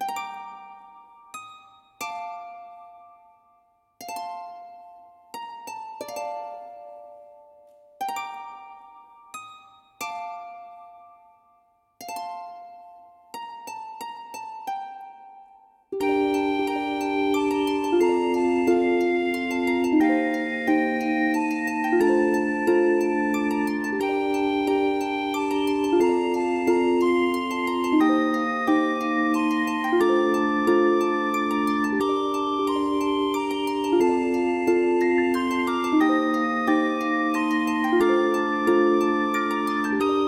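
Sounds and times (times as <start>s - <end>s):
church music: 16.0s - 40.2s.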